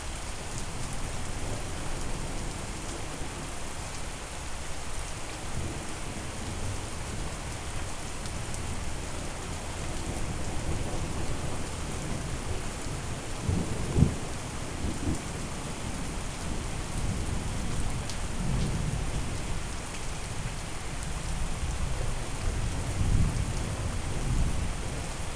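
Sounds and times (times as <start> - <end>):
relaxing rain: 0.0 - 25.3.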